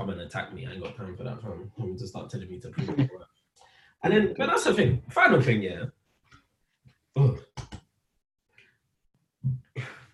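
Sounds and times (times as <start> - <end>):
speech: 0.0 - 3.3, 4.0 - 6.0
person burping: 2.8 - 3.1.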